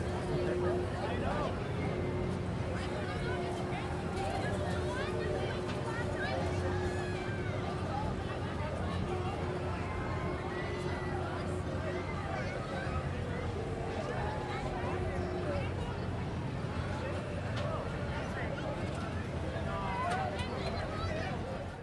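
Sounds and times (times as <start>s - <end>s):
fair ride swirling and decelerating: 0.0s - 21.8s
voices: 0.0s - 21.8s.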